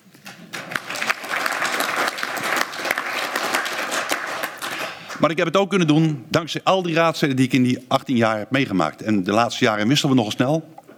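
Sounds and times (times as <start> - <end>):
audience applause: 0.5 - 5.2
speech: 5.2 - 10.8.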